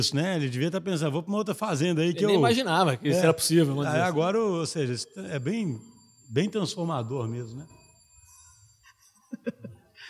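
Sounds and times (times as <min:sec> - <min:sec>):
speech: 0:00.0 - 0:07.8
small bell ringing: 0:02.3 - 0:10.0.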